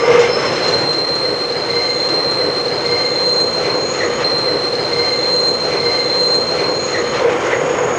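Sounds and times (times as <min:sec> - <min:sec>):
train: 0:00.0 - 0:07.9.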